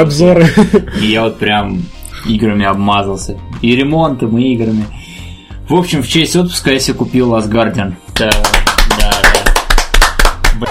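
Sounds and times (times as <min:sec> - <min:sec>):
speech: 0:00.0 - 0:05.0, 0:05.7 - 0:08.6
hand clapping in the studio: 0:08.1 - 0:10.6.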